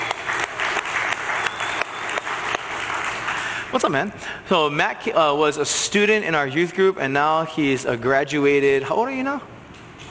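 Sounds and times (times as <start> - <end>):
audience applause: 0.0 - 3.7
speech: 3.7 - 9.5.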